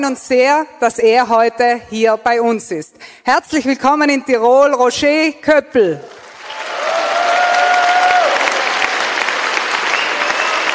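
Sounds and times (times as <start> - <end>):
speech: 0.0 - 6.2
thunderous applause: 6.4 - 10.7.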